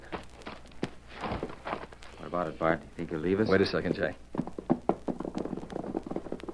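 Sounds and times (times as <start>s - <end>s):
horse galloping hoofbeats: 0.0s - 2.0s, 4.3s - 6.5s
speech: 2.3s - 4.3s.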